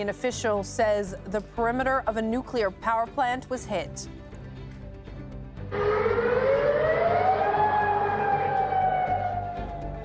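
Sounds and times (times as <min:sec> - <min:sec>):
speech: 0:00.0 - 0:04.2
air raid alert siren: 0:05.7 - 0:10.0.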